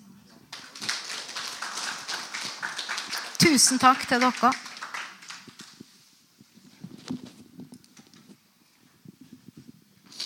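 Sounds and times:
audience applause: 0.5 - 5.8
speech: 3.5 - 4.7.

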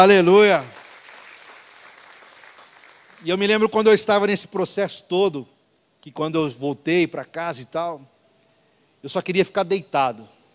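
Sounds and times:
speech: 0.0 - 0.8, 3.2 - 8.1, 9.0 - 10.4
audience applause: 0.4 - 3.3.

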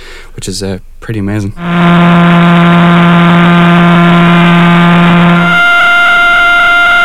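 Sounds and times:
speech: 0.4 - 2.7
sonified radio pulses of rotating pulsars: 1.6 - 7.0.

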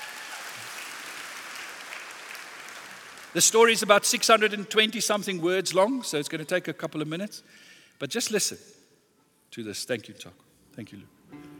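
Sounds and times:
audience round of applause: 0.0 - 3.4
speech: 3.3 - 8.8, 9.5 - 11.2.

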